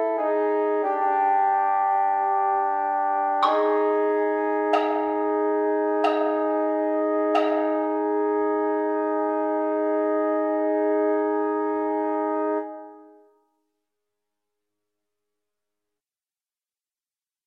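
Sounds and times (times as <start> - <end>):
mellophone: 0.2 - 13.3.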